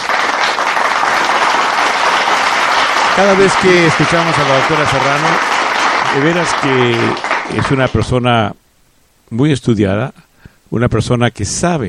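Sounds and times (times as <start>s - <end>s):
audience applause: 0.0s - 8.1s
speech: 3.2s - 5.5s, 6.1s - 8.6s, 9.3s - 11.8s.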